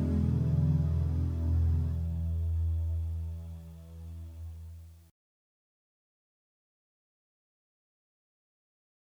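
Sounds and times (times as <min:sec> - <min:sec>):
nylon guitar strings: 0:00.0 - 0:04.8.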